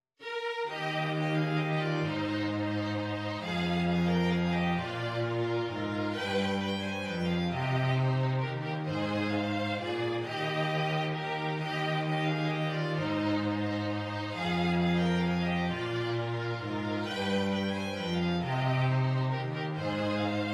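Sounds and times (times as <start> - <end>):
cello: 0.2 - 20.5
violins playing a Christmas carol: 0.2 - 20.5.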